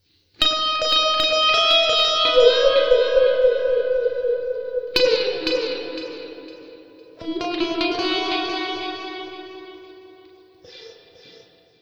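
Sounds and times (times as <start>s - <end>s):
slow funk lounge guitar in F sharp: 0.4s - 11.5s.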